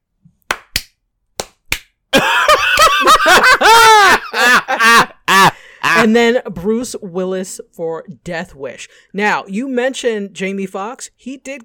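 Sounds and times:
slow hand claps: 0:00.4 - 0:02.0, 0:02.7 - 0:03.0
high-pitched laughter: 0:02.2 - 0:06.1
speech: 0:06.0 - 0:11.6.

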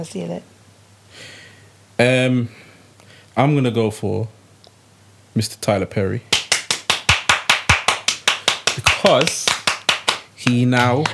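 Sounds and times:
speech: 0:00.0 - 0:01.4, 0:02.0 - 0:02.7, 0:03.4 - 0:04.4, 0:05.4 - 0:06.4, 0:09.0 - 0:09.6, 0:10.4 - 0:11.1
hand clapping: 0:06.3 - 0:11.1.

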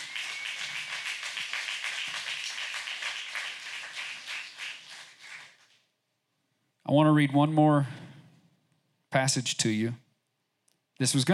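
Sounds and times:
audience hand clapping in praise: 0:00.0 - 0:05.8
speech: 0:06.9 - 0:08.0, 0:09.1 - 0:10.0, 0:11.0 - 0:11.3.

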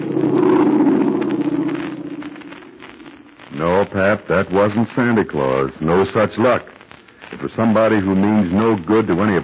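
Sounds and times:
airplane flying: 0:00.0 - 0:03.1
speech: 0:03.6 - 0:06.8, 0:07.4 - 0:09.4.

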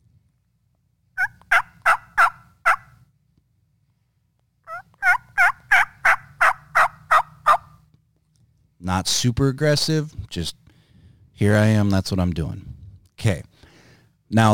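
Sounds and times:
hen turkey call made on a game call: 0:01.2 - 0:03.0, 0:04.7 - 0:07.8
speech: 0:08.8 - 0:10.6, 0:11.4 - 0:13.5, 0:14.3 - 0:14.5.

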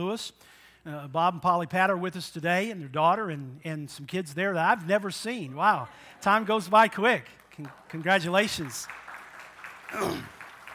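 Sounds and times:
speech: 0:00.0 - 0:09.0, 0:09.9 - 0:10.4
audience clapping: 0:06.2 - 0:10.7
voiced exclamation sliding down in pitch: 0:09.9 - 0:10.4.

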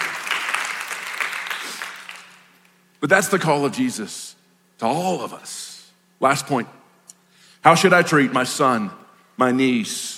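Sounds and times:
church congregation clapping: 0:00.0 - 0:02.7
speech: 0:03.0 - 0:06.8, 0:07.6 - 0:10.1.

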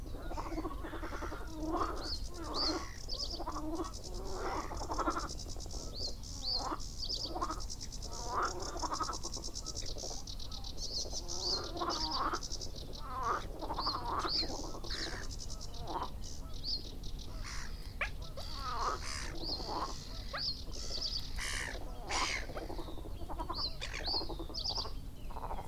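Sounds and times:
cuckoo: 0:00.0 - 0:25.6
frogs: 0:00.0 - 0:25.6.

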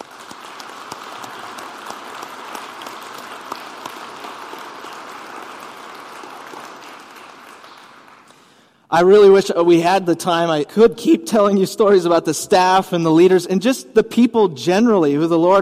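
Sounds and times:
audience applause: 0:00.0 - 0:08.6
speech: 0:08.9 - 0:15.5.

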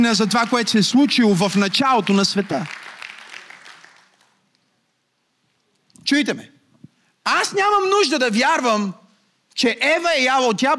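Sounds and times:
speech: 0:00.0 - 0:02.8, 0:06.1 - 0:06.5, 0:07.2 - 0:09.0, 0:09.6 - 0:10.7
audience clapping: 0:00.0 - 0:04.6.

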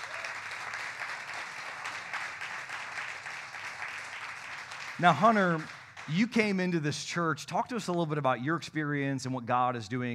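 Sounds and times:
audience applause: 0:00.0 - 0:06.3
speech: 0:05.0 - 0:10.1.

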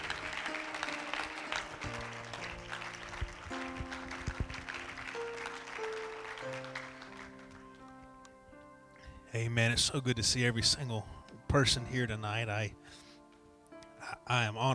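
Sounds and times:
audience applauding: 0:00.0 - 0:08.3
speech: 0:09.4 - 0:13.0, 0:14.3 - 0:14.7.

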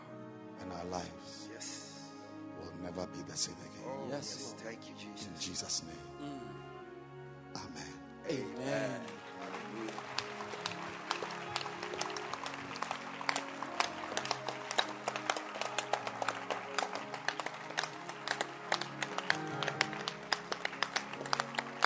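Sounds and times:
speech: 0:00.8 - 0:01.9, 0:02.8 - 0:06.7, 0:07.6 - 0:09.2
audience clapping: 0:08.3 - 0:21.8.

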